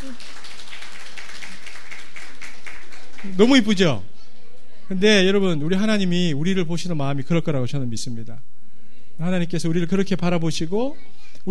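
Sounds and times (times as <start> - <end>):
audience applauding to welcome a baby: 0.0 - 3.9
speech: 3.2 - 4.1, 4.9 - 8.5, 9.2 - 11.4.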